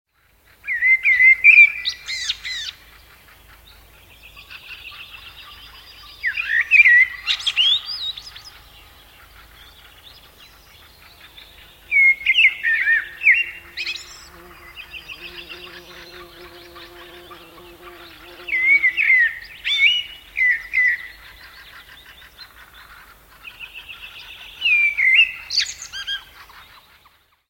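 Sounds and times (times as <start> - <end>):
bird chorus: 0.2 - 27.4
common blackbird singing: 4.1 - 22.4, 23.5 - 26.6.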